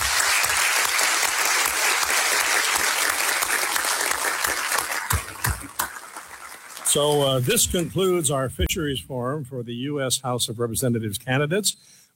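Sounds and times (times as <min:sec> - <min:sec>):
audience applause: 0:00.0 - 0:07.8
speech: 0:07.0 - 0:12.1.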